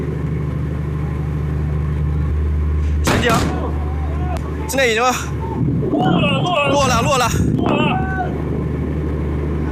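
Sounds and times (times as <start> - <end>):
rocket engine firing during hover landing: 0.0 - 9.7
speech: 3.2 - 3.6, 4.7 - 8.4
excited voices shouting: 3.2 - 8.5.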